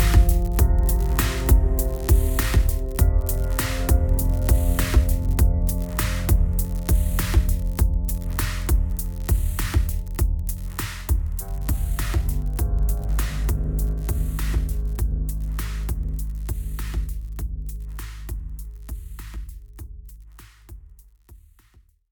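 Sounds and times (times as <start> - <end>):
atmosphere ambience: 0.0 - 17.5.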